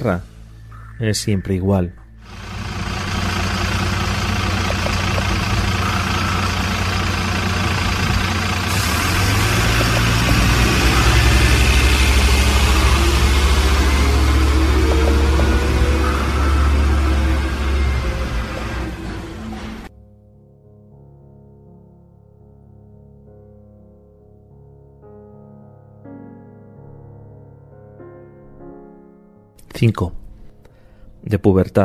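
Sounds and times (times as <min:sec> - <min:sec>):
speech: 0:00.0 - 0:00.3, 0:01.0 - 0:02.5, 0:29.8 - 0:30.2, 0:31.2 - 0:31.8
bus engine running: 0:02.2 - 0:19.9.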